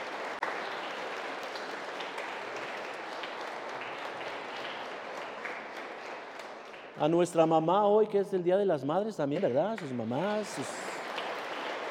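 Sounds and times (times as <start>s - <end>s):
audience applause: 0.0s - 7.0s, 9.6s - 11.9s
speech: 7.0s - 10.8s.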